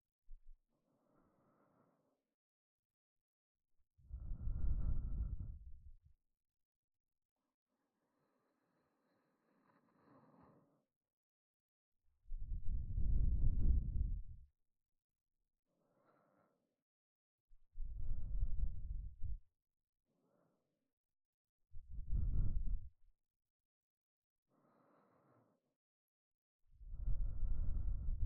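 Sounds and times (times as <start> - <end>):
person breathing in sleep: 0.8 - 2.2, 4.1 - 5.9, 8.2 - 10.8, 12.3 - 14.4, 15.7 - 16.6, 17.8 - 19.4, 21.9 - 22.9, 24.5 - 25.7, 26.9 - 28.2.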